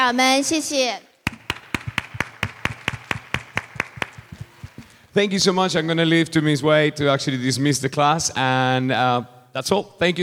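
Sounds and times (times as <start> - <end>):
speech: 0.0 - 1.1, 5.2 - 10.2
audience hand claps: 1.2 - 5.0.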